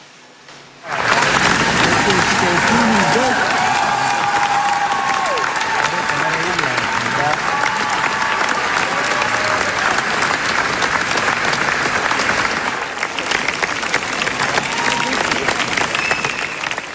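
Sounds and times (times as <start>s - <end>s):
standing ovation applause at film premiere: 0.8s - 16.9s.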